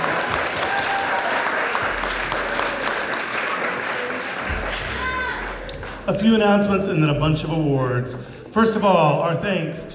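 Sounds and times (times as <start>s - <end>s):
audience applause: 0.0s - 6.1s
speech: 6.1s - 9.9s.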